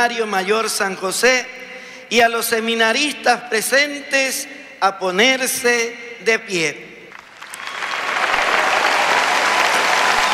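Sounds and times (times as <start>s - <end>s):
speech: 0.0s - 6.9s
audience applause: 7.2s - 10.3s.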